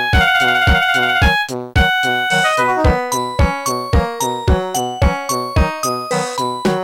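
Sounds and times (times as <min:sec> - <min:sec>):
melody: 0:00.1 - 0:06.7.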